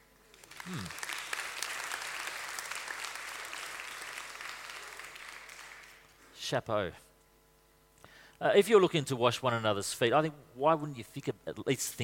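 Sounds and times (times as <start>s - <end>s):
audience clapping: 0.3s - 6.2s
speech: 6.5s - 7.1s, 8.4s - 12.0s.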